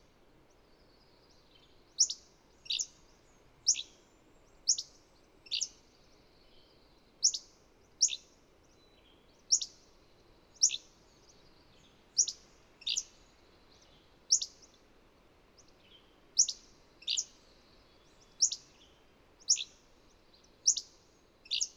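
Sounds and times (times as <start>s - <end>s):
bird chirping with sharp high downward-sweeping chirps: 0.5s - 14.8s, 15.6s - 21.7s.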